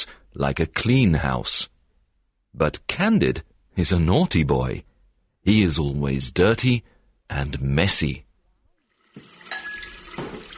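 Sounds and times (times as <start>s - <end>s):
speech: 0.4s - 1.7s, 2.6s - 8.2s
hands washed under a running tap: 8.8s - 10.5s.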